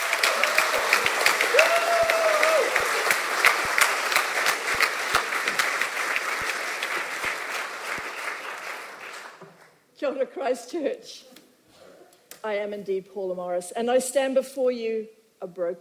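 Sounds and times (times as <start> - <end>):
large audience applause: 0.0 - 9.7
speech: 10.1 - 11.3, 12.4 - 15.7.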